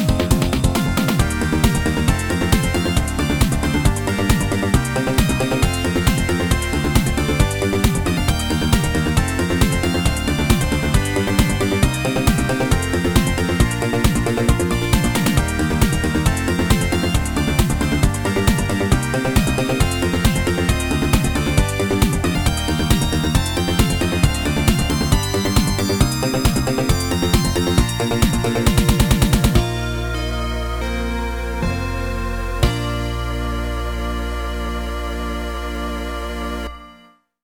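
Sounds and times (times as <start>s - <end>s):
FM synth music: 0.0s - 37.1s.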